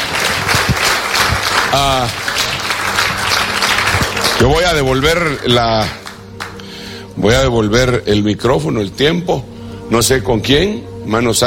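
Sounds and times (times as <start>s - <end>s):
applause: 0.0s - 6.7s
speech: 1.7s - 2.2s, 4.4s - 6.0s, 7.2s - 11.4s.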